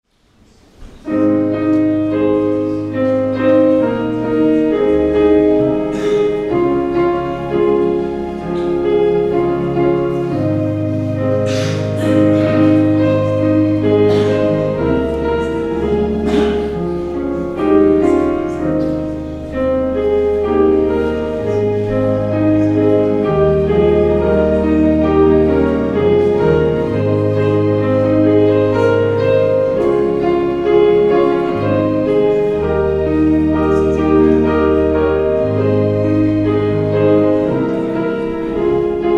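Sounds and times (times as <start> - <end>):
prelude music: 0.4 - 39.1.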